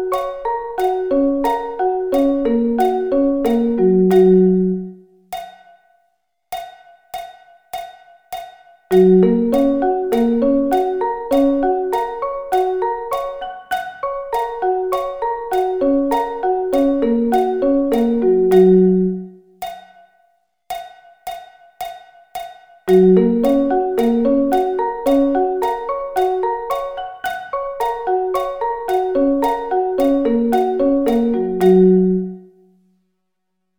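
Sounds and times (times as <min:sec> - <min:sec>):
Gb arpeggio inversions: 0:00.0 - 0:04.9, 0:08.9 - 0:19.3, 0:22.9 - 0:32.5.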